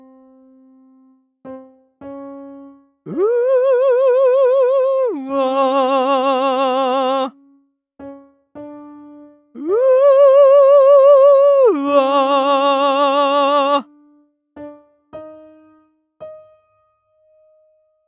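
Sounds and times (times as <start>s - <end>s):
person singing in a practice mix: 3.1s - 7.4s, 9.6s - 13.9s.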